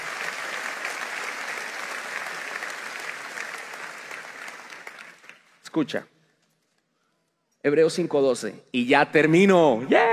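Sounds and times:
audience applause: 0.0 - 5.6
speech: 5.8 - 6.1, 7.6 - 10.1.

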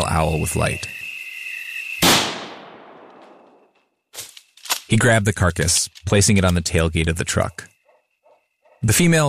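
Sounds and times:
steady high insect trill: 0.0 - 9.2
speech: 0.1 - 1.0, 4.9 - 7.7, 8.8 - 9.2
shotgun blast: 2.0 - 3.3.

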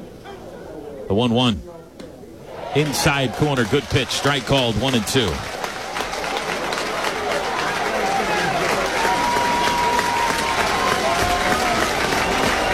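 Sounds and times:
speech: 1.1 - 1.7, 2.8 - 5.6
baseball stadium crowd cheering: 2.5 - 12.7.

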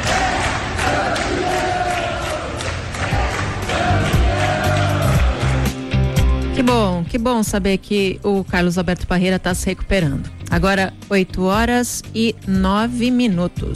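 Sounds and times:
crowd cheering and chanting outdoors outside hospital: 0.0 - 6.4
speech: 6.7 - 13.7.

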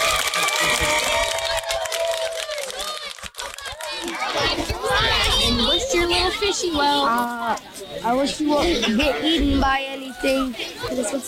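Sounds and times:
round of applause: 0.0 - 5.0
speech: 5.9 - 11.2.

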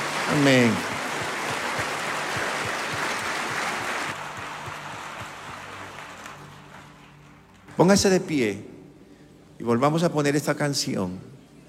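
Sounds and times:
audience applause: 0.0 - 7.7
speech: 0.3 - 0.9, 7.8 - 8.7, 9.6 - 11.3.

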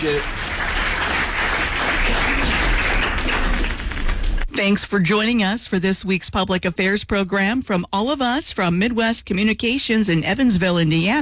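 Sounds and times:
speech: 0.0 - 0.7, 4.6 - 11.1
applause: 0.0 - 4.5.

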